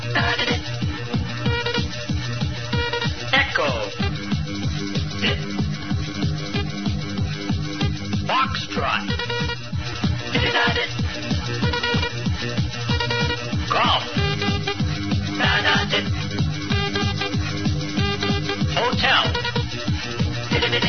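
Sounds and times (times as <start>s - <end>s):
morse code music: 0.0s - 20.8s.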